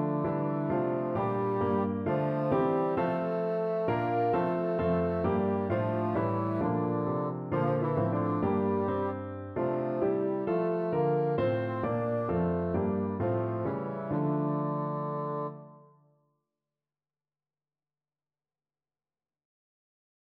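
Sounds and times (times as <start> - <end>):
bassoon playing a carol: 0.0 - 15.8.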